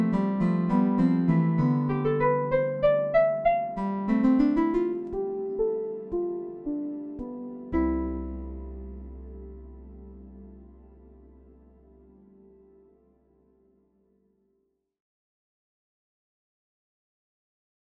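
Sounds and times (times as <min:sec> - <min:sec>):
plucked strings: 0:00.0 - 0:12.2.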